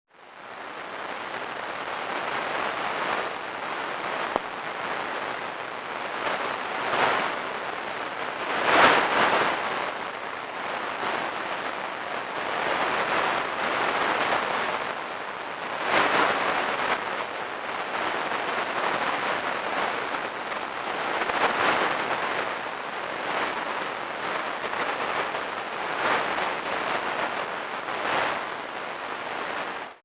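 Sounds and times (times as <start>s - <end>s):
21 MHz radio band: 0.3s - 30.0s.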